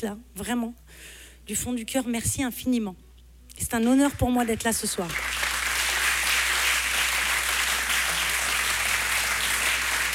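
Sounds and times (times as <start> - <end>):
speech: 0.0 - 5.4
audience applause: 5.1 - 10.1.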